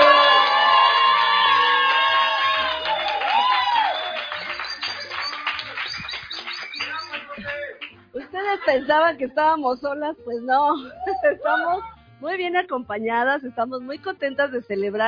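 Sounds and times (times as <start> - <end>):
crowd cheering and whooping: 0.0 - 8.0
scattered applause: 0.0 - 8.0
laughter: 4.5 - 9.4, 10.7 - 12.0
speech: 8.8 - 15.0.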